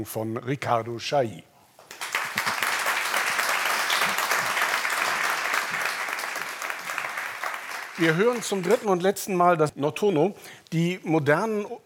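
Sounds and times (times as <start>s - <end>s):
speech: 0.0s - 1.5s, 8.0s - 11.8s
large audience applause: 1.9s - 9.0s.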